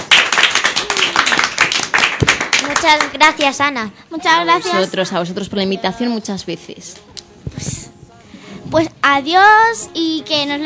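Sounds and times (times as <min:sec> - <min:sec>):
audience applause for a guest at a Spanish-language event: 0:00.0 - 0:03.2
speech: 0:02.8 - 0:07.9, 0:08.7 - 0:10.6.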